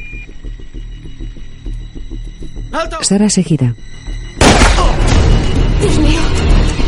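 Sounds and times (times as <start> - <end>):
quiet film music: 0.0 - 6.8
speech: 0.1 - 1.3, 2.7 - 4.9, 5.8 - 6.4
single loud gunshot in a 2013 action thriller film: 4.4 - 5.4.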